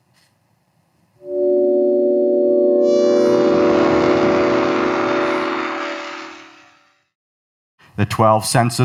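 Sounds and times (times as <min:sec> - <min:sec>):
synthetic tones converted from pig decomposition odors: 0:01.2 - 0:06.9
speech: 0:08.2 - 0:08.8.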